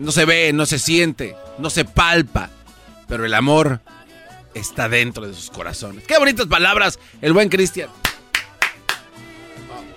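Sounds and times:
speech: 0.0 - 8.1
person clapping hands: 8.0 - 9.1.

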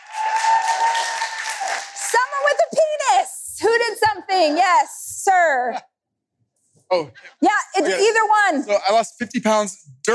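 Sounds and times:
audience cheering and applause: 0.0 - 3.3
speech: 4.4 - 5.9, 6.9 - 10.1.

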